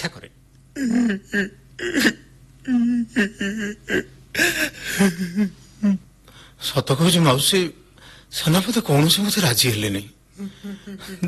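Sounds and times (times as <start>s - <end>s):
girl crying with her head bowed: 0.8s - 6.0s, 10.4s - 11.2s
speech: 0.8s - 6.0s, 6.6s - 11.2s.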